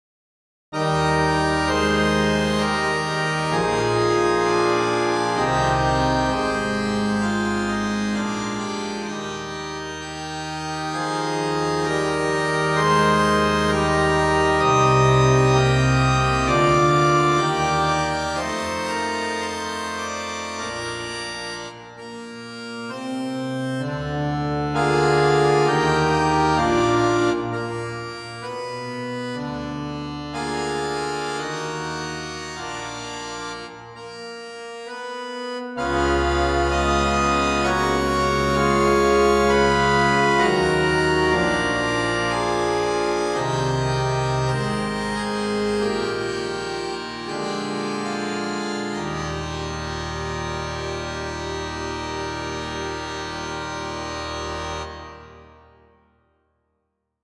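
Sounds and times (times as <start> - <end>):
organ piece played on harmoniums: 0.8 - 56.0.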